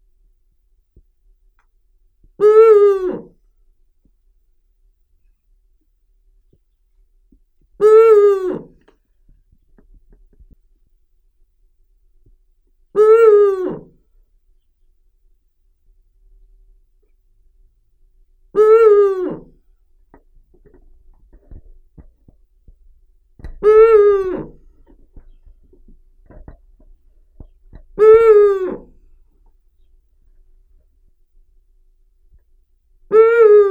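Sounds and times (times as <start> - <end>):
Eurasian eagle-owl Bubo bubo calling: 2.4 - 3.2, 7.8 - 8.7, 13.0 - 13.9, 18.6 - 19.5, 23.6 - 24.6, 28.0 - 28.9, 33.1 - 33.7.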